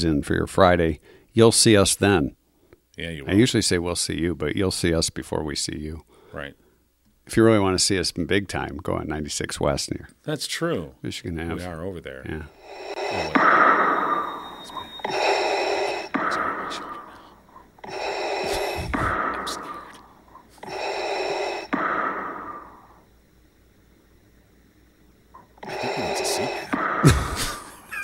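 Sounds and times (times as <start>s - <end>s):
speech: 0.0s - 2.4s, 3.0s - 6.6s, 7.3s - 13.7s
heavy wheezing breathing: 12.5s - 23.0s, 25.6s - 27.7s.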